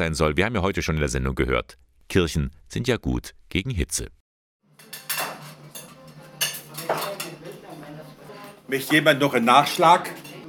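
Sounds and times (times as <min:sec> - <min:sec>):
speech: 0:00.0 - 0:04.2, 0:08.7 - 0:10.2
cutlery scraping and clinking against dishes in a busy dining room: 0:04.7 - 0:10.4
murmur of chatter in a busy dining room: 0:06.0 - 0:10.4.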